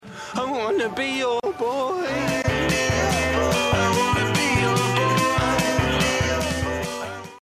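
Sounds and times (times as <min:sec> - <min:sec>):
chill music: 0:00.1 - 0:07.4.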